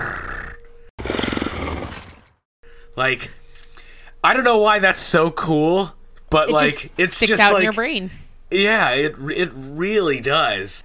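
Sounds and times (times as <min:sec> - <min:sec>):
video game alien creature purr: 0:00.0 - 0:02.2
speech: 0:03.0 - 0:03.4, 0:04.2 - 0:10.8.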